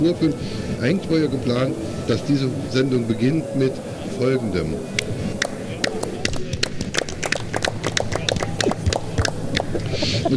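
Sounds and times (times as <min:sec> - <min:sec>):
speech: 0:00.0 - 0:05.1
laughter: 0:00.0 - 0:10.3
low rumbling murmur: 0:00.0 - 0:10.3
small group applause played from soundboard: 0:04.8 - 0:10.3.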